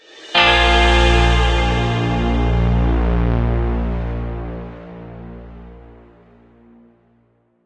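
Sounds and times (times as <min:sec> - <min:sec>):
mission success jingle: 0:00.4 - 0:04.7.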